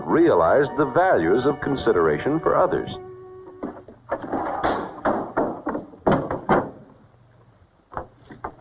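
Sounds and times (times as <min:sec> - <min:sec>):
speech: 0:00.1 - 0:03.1
screen door banging shut against the frame: 0:04.2 - 0:07.0.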